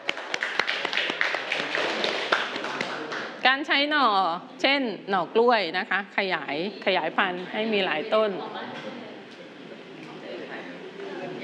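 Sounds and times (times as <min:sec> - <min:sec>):
class clapping for a classmate: 0:00.0 - 0:03.4
speech: 0:03.5 - 0:08.9.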